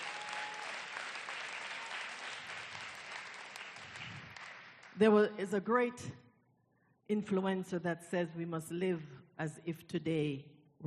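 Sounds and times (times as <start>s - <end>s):
audience clapping: 0.0s - 5.0s
speech: 5.0s - 6.2s, 7.1s - 10.8s.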